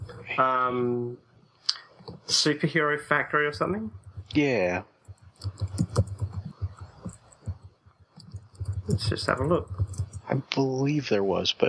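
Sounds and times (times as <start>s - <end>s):
speech: 0.4s - 5.6s, 9.0s - 11.6s
typing on a computer keyboard: 3.2s - 10.5s.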